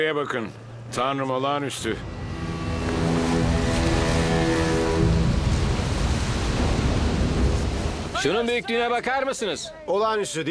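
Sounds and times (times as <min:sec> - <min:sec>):
speech: 0:00.0 - 0:02.5, 0:08.2 - 0:10.4
waterfall roaring: 0:02.3 - 0:08.6.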